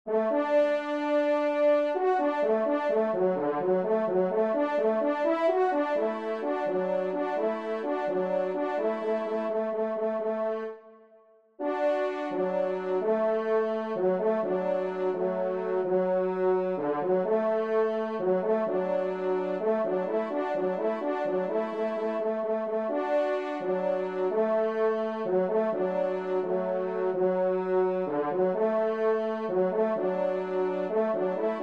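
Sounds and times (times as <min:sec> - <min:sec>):
march with trumpets: 0:00.1 - 0:10.8, 0:11.6 - 0:31.6.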